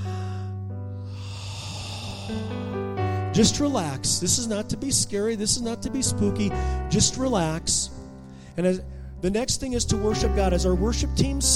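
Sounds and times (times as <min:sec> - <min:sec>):
church congregation inhaling deeply together: 0:00.0 - 0:03.4
speech: 0:03.4 - 0:08.0, 0:08.6 - 0:11.5.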